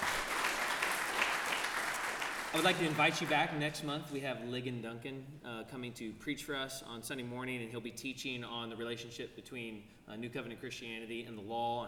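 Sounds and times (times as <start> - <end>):
audience clapping: 0.0 - 3.7
speech: 2.5 - 11.8.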